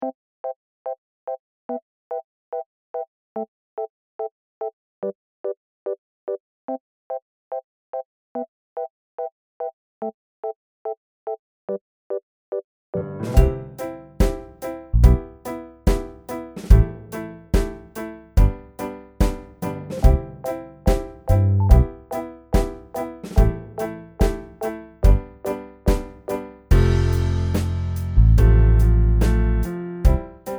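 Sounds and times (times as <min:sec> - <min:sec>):
backing music: 0:13.2 - 0:30.5.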